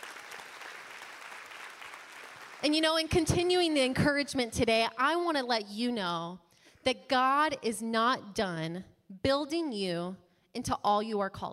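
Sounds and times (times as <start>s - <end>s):
audience clapping: 0.0s - 2.8s
speech: 2.6s - 11.5s.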